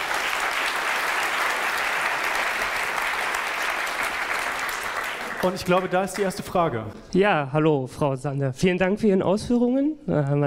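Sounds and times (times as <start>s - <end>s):
audience clapping: 0.0s - 6.9s
speech: 5.4s - 10.4s.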